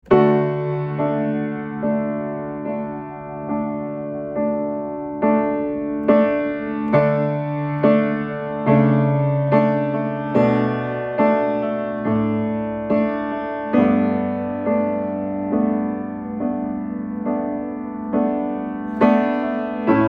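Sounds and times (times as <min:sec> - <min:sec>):
piano: 0:00.0 - 0:20.0.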